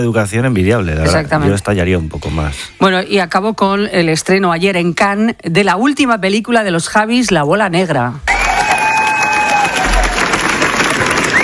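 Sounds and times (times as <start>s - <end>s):
speech: 0.0s - 8.4s
festival audience applauding: 8.3s - 11.4s.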